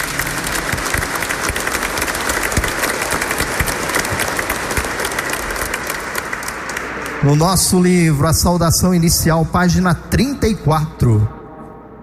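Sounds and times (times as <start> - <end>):
audience applauding warmly: 0.0 - 7.8
speech: 7.2 - 11.4.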